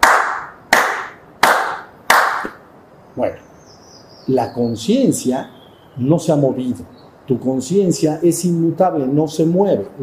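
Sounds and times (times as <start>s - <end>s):
single person clapping during a talk: 0.0s - 2.6s
speech: 3.2s - 3.5s, 4.2s - 10.0s.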